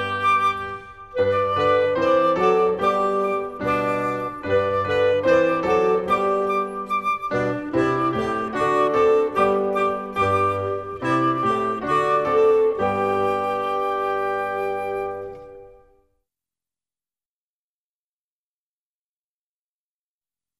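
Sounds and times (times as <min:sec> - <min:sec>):
music: 0:00.0 - 0:16.2.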